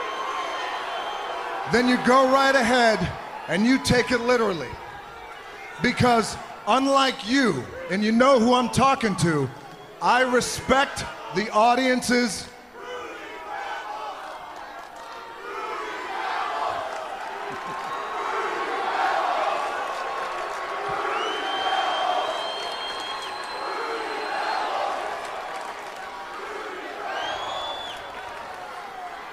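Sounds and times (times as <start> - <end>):
wrestling event crowd chanting and cheering: 0.0 - 29.3
speech: 1.7 - 4.8, 5.8 - 12.5.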